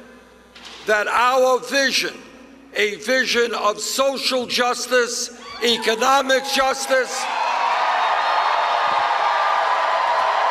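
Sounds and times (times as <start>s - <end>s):
speech: 0.9s - 7.4s
boisterous rally crowd cheering: 5.6s - 10.4s.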